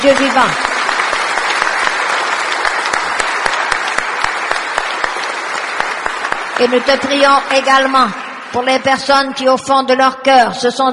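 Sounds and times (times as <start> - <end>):
speech: 0.0 - 0.7, 6.6 - 10.9
audience clapping: 0.0 - 9.6.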